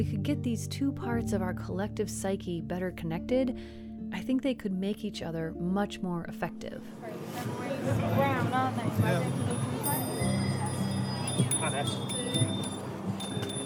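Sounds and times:
speech: 0.0 - 10.4, 11.6 - 12.7
crowd murmuring and talking: 7.2 - 13.6
many bicycle bells ringing at a protest: 8.8 - 13.6.

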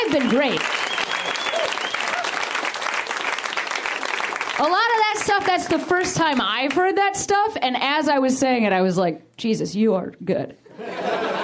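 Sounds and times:
crowd applauding: 0.0 - 5.6
speech: 0.1 - 2.2, 4.6 - 11.2
faint high whoops or whistles: 0.8 - 2.4
laughter: 10.7 - 11.4.

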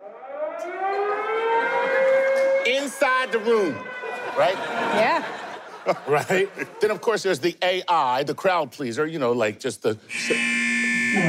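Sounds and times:
standard alarm siren: 0.0 - 5.5, 10.1 - 11.2
speech: 2.8 - 11.2
laughter: 3.2 - 7.5.

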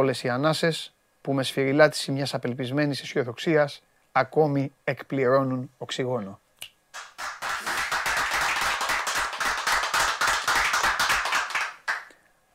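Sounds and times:
speech: 0.0 - 7.1
small group clapping: 6.9 - 12.2.

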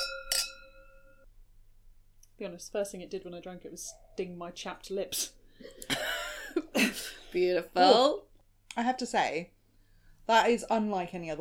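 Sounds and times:
wine glasses clinking in a toast: 0.0 - 1.2
speech: 2.4 - 6.1, 7.0 - 9.6, 10.3 - 11.3.

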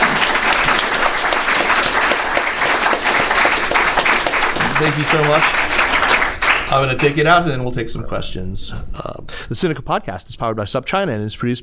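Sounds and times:
audience applause: 0.0 - 7.3
speech: 4.8 - 5.7, 6.7 - 11.6.

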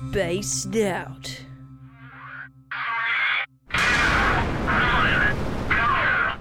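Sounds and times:
speech: 0.1 - 1.4
Terran 1 3D-printed rocket launching from Cape Canaveral, Florida: 3.7 - 6.3.

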